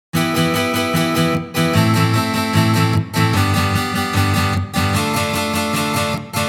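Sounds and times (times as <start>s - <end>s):
Chechen fight tune on guitar: 0.2s - 6.4s.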